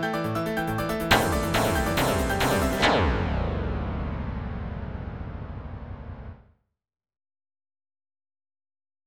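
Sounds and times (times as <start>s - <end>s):
Black MIDI music on Nokia 1208: 0.5s - 6.4s.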